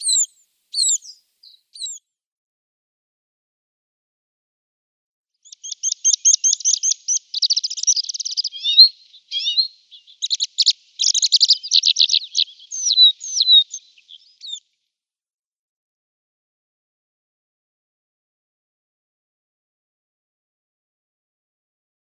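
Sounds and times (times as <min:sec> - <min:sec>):
Red-throated Pipit calls: 0:00.0 - 0:02.0, 0:05.4 - 0:14.6.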